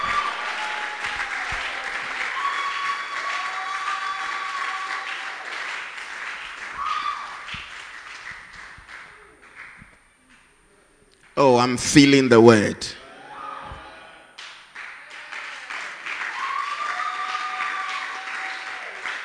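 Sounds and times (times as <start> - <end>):
shouts and whoops: 0.0 - 5.6, 6.7 - 7.6, 13.0 - 14.3, 15.1 - 19.1
large audience applause: 0.0 - 9.9, 14.4 - 19.2
speech: 11.4 - 13.0.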